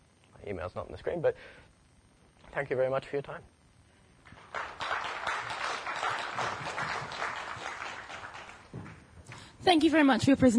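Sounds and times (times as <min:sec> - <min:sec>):
speech: 0:00.4 - 0:01.8, 0:02.5 - 0:03.6, 0:09.6 - 0:10.5
audience applause after a presentation: 0:04.2 - 0:09.1.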